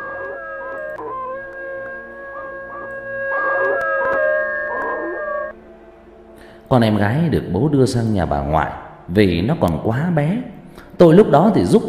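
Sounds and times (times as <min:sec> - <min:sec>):
neighbour's dogs howling: 0:00.0 - 0:05.6
speech: 0:06.7 - 0:11.8.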